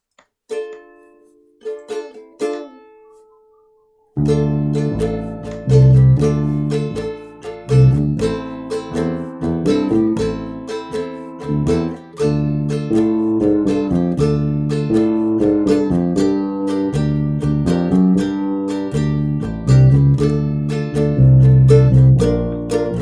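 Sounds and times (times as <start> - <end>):
bass practice playing: 4.2 - 23.0.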